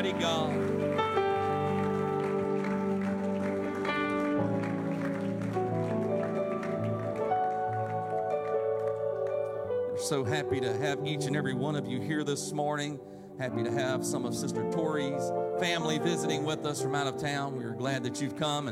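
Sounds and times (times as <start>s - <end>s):
speech: 0.0s - 0.8s, 10.1s - 18.7s
audience hand clapping: 0.0s - 10.2s.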